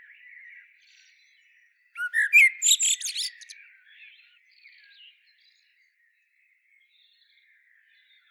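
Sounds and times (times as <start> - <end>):
Common blackbird singing: 2.0 - 3.6.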